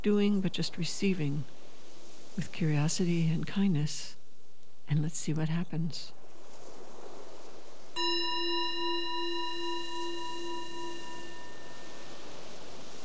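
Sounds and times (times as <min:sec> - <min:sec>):
speech: 0:00.0 - 0:01.6, 0:02.4 - 0:04.2, 0:04.9 - 0:06.2
meditation bell: 0:08.0 - 0:13.0.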